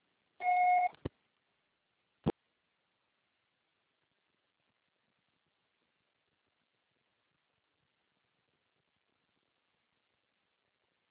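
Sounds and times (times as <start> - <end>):
voicemail beep tone: 0.4 - 0.9.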